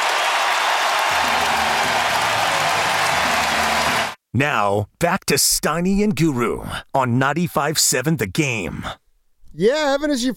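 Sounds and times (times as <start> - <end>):
baseball stadium crowd cheering: 0.0 - 4.2
speech: 4.4 - 10.3.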